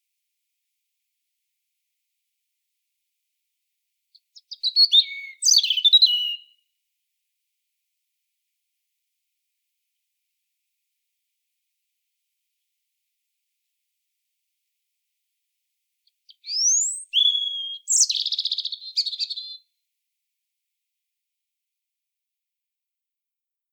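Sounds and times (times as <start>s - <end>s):
European robin singing: 4.2s - 6.6s, 16.2s - 19.7s.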